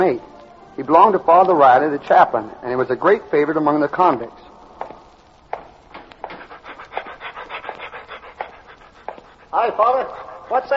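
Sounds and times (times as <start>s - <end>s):
speech: 0.0s - 4.4s, 9.6s - 10.7s
dog panting: 6.2s - 10.7s.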